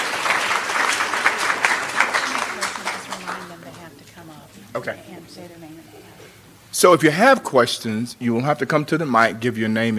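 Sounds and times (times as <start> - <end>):
audience applause: 0.0 - 3.9
speech: 4.8 - 9.9.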